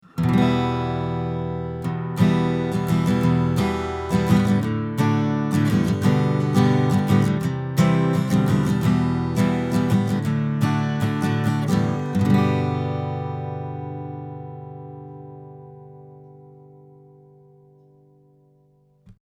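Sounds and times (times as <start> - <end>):
acoustic guitar recorded with Neumann V476 and U87: 0.0 - 19.2.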